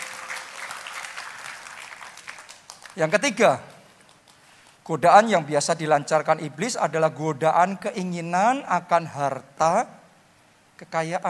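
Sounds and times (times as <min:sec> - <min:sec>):
audience applause: 0:00.0 - 0:03.1
speech: 0:03.0 - 0:03.7, 0:04.8 - 0:10.0, 0:10.8 - 0:11.2.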